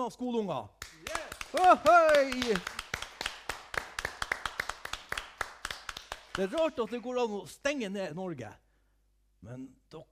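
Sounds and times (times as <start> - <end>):
speech: 0.0 - 0.8, 1.5 - 2.8, 6.4 - 8.6, 9.4 - 10.1
hands clapping: 0.8 - 7.2.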